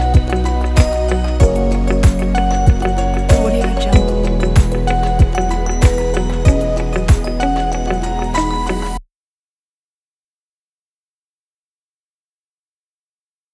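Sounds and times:
ambient tech music: 0:00.0 - 0:09.0.

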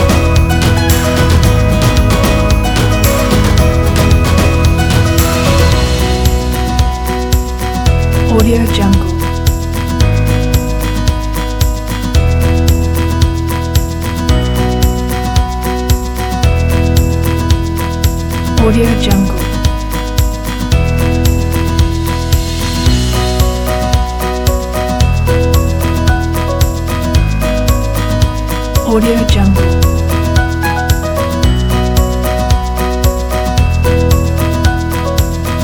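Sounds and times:
uplifting motivational acoustic indie folk music: 0:00.0 - 0:35.6.

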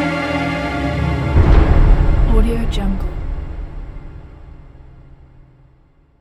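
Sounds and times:
uneasy transition sound: 0:00.1 - 0:05.8.

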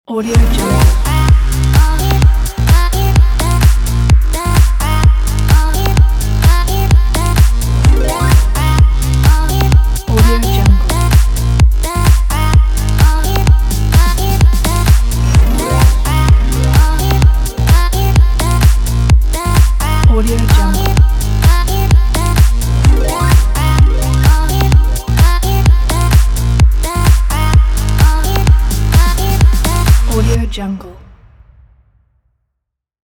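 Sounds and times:
fashion show trailer music: 0:00.3 - 0:32.1.

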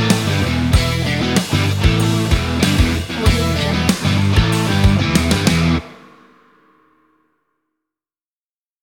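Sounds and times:
upbeat rock background music: 0:00.0 - 0:06.4.

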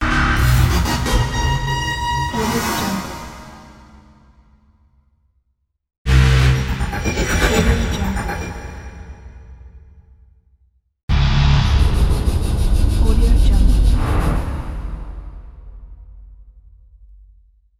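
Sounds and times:
dark horror music: 0:00.0 - 0:04.4, 0:06.1 - 0:09.9, 0:11.1 - 0:16.8.

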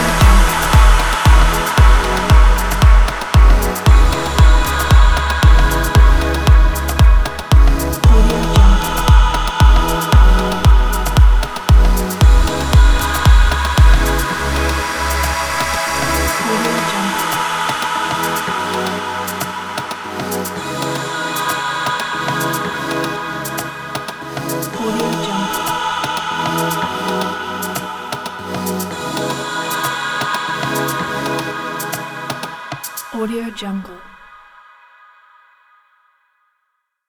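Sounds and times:
future electronic music: 0:00.0 - 0:33.2.

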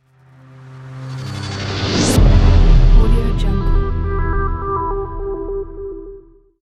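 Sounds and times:
cyberpunk trend bumper logo: 0:00.0 - 0:06.4.

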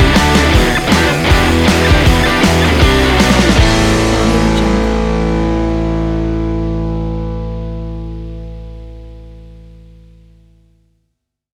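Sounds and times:
uplifting upbeat rock music: 0:00.0 - 0:09.0.

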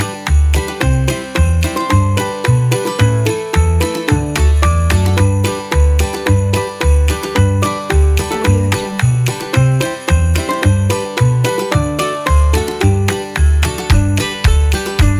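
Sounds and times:
acoustic Christmas tune: 0:00.0 - 0:15.1.

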